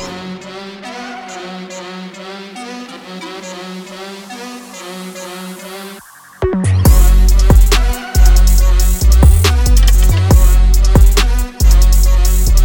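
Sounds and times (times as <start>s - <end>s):
instrumental music: 6.5s - 12.6s.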